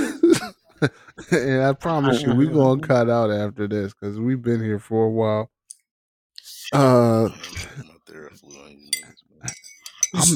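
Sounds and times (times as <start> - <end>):
laughter: 0.0 - 1.6
speech: 0.8 - 5.6, 6.7 - 10.3
glasses clinking in a toast: 8.8 - 10.3
tableware clatter: 8.8 - 10.3.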